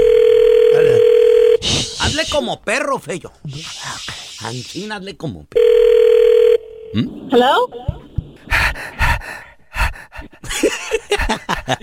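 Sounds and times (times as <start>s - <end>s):
phone tone while a call is placed: 0.0s - 1.6s, 5.6s - 7.0s
speech: 2.3s - 5.9s, 6.9s - 8.0s, 11.3s - 11.8s
laughter: 10.4s - 11.8s.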